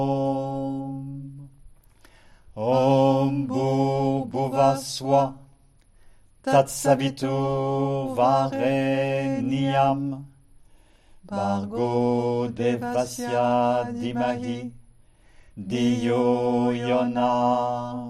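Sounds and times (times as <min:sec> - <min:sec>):
mantra chanting: 0:00.0 - 0:01.5, 0:02.6 - 0:05.5, 0:06.4 - 0:10.3, 0:11.3 - 0:14.8, 0:15.6 - 0:18.0.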